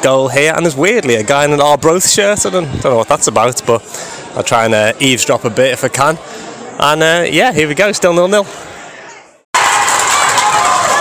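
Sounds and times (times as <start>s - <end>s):
speech: 0.0s - 8.7s
football stadium crowd cheering: 9.5s - 11.0s.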